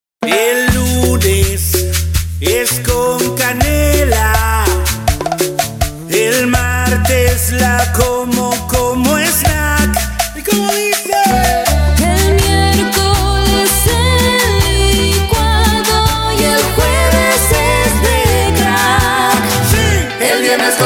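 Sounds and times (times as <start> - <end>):
tropical Argentine cumbia jingle: 0.2 - 20.8.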